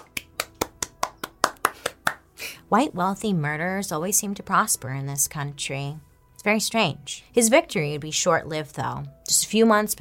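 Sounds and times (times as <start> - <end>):
applause: 0.0 - 2.2
speech: 2.7 - 9.9.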